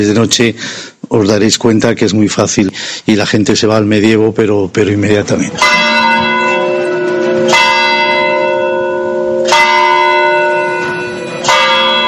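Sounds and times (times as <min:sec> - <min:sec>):
speech: 0:00.0 - 0:05.9
bells of the church of San Francisco ringing: 0:05.5 - 0:12.0.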